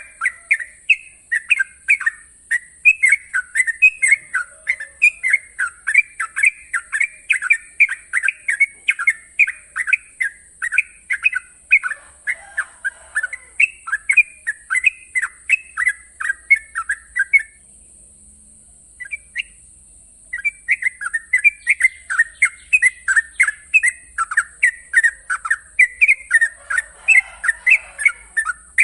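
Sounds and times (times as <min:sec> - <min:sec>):
Yellow-vented Bulbul singing long-trill master song: 0:00.0 - 0:18.0, 0:18.7 - 0:28.8.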